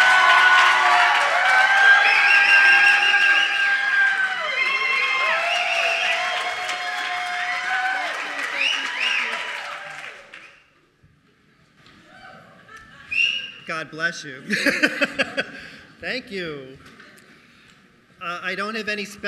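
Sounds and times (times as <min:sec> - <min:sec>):
audience cheering and applauding a welcome: 0:00.0 - 0:10.7
laughter: 0:12.0 - 0:13.6, 0:14.4 - 0:16.0
speech: 0:13.8 - 0:15.4, 0:16.0 - 0:16.9, 0:18.2 - 0:19.2.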